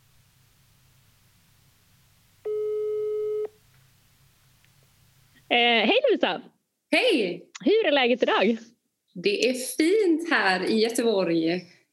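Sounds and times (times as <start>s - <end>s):
faint hiss: 0.0s - 11.9s
telephone ringing tone while a guest is being called: 2.5s - 3.6s
speech: 5.5s - 11.9s.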